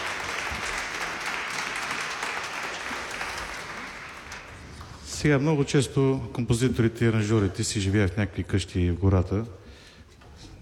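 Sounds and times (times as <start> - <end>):
audience applause: 0.0 - 5.0
speech: 5.2 - 9.6.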